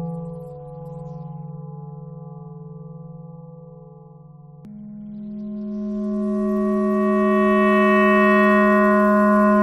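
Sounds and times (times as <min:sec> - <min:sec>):
clarinet thread noise: 0:06.1 - 0:09.6.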